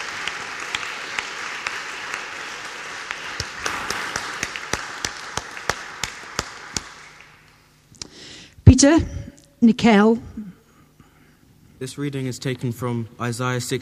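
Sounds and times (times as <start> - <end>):
audience applauding: 0.0 - 7.7
speech: 8.8 - 10.3, 11.8 - 13.8.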